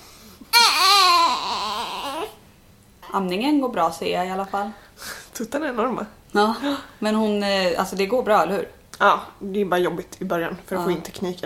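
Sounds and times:
baby crying: 0.5 - 2.4
speech: 3.1 - 4.8, 5.4 - 11.4.

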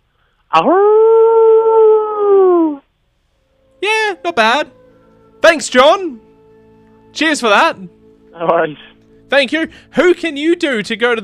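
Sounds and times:
speech: 0.5 - 1.0, 4.3 - 4.8, 5.5 - 6.3, 7.1 - 11.2
person imitating a dingo howl: 0.5 - 2.8, 3.7 - 6.2.

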